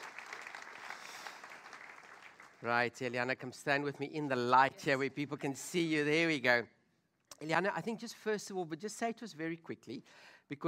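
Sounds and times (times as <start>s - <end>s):
audience applause: 0.0s - 2.7s
speech: 2.6s - 6.8s, 7.4s - 10.6s.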